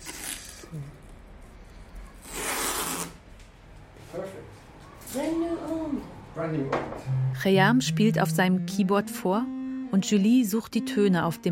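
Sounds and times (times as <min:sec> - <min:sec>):
masking tape torn and pressed onto a musical instrument: 0:00.0 - 0:00.8, 0:02.2 - 0:03.2
speech: 0:00.7 - 0:01.0, 0:06.4 - 0:11.4.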